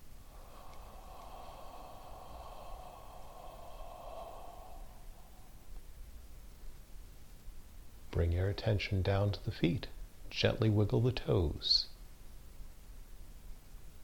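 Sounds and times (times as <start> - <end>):
soft breathing in and out at the end of a meditation: 0.0 - 6.4
low noise: 0.0 - 14.0
speech: 8.2 - 11.9.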